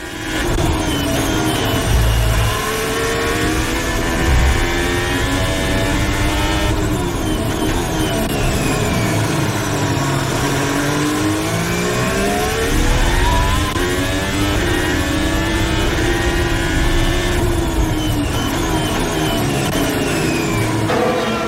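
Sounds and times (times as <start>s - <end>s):
Formula 1 car engine onboard Valtteri Bottas at the 2022 Bahrain Grand Prix: 0.0s - 21.4s.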